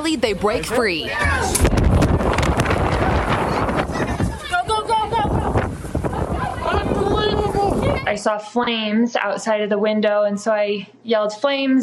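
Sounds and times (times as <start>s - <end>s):
speech: 0.0s - 2.4s, 8.1s - 11.8s
110-mile-an-hour wind gusts against a restaurant door: 1.1s - 8.2s.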